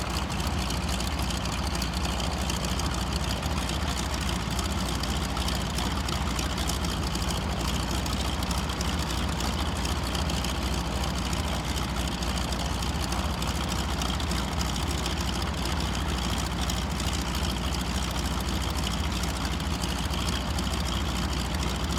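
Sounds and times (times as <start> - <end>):
CAC CA-25 Winjeel RAAF fighter trainer aircraft idling: 0.0 - 21.9.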